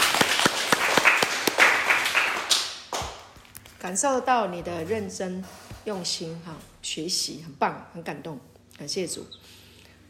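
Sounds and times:
audience applause: 0.0 - 2.7
speech: 3.8 - 9.6.

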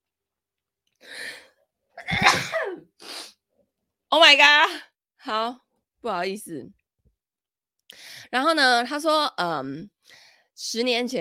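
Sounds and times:
person sneezing: 2.0 - 3.3
speech: 4.1 - 6.8, 7.9 - 11.1.

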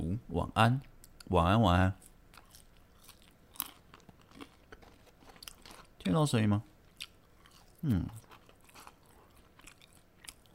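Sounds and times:
speech: 0.4 - 2.0, 6.0 - 6.7, 7.8 - 8.2
crunchy chewing while eating: 1.9 - 6.0, 6.8 - 10.5.

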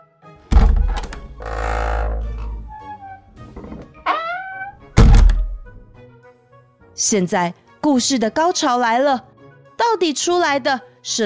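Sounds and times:
door being opened: 0.5 - 5.8
speech: 7.0 - 11.2.

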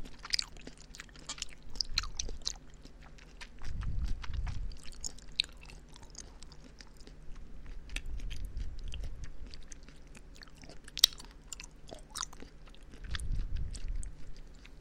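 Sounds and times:
person chewing Halloween candy: 0.0 - 14.7.

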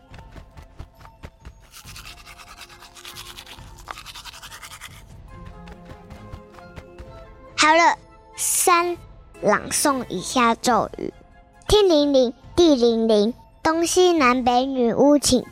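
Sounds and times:
toothbrush scrubbing teeth: 1.7 - 5.2
speech: 7.6 - 15.5.

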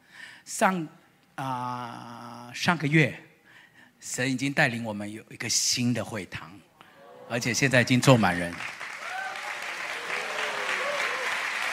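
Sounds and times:
speech: 0.5 - 3.3, 4.0 - 6.7, 7.3 - 8.8
people cheering: 6.9 - 11.7
audience clapping hands: 7.6 - 11.7.

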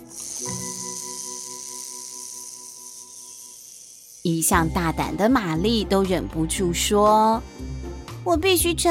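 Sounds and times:
hissing sound in a cave: 0.0 - 4.9
speech: 4.2 - 8.8.

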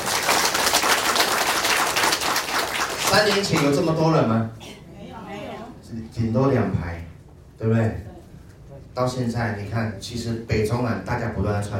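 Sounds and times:
audience applause: 0.0 - 3.8
speech: 3.2 - 4.6, 5.9 - 7.0, 7.6 - 8.1, 9.0 - 11.7.

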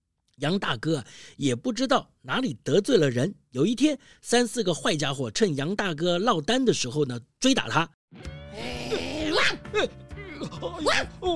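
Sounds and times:
speech: 0.4 - 11.3
voice imitating dog barking: 8.5 - 11.3.

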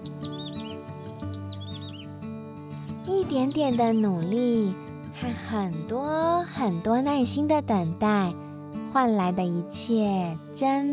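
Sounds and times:
small birds singing in trees: 0.0 - 4.8
sustained musical backing: 0.0 - 10.9
speech: 3.1 - 10.9.

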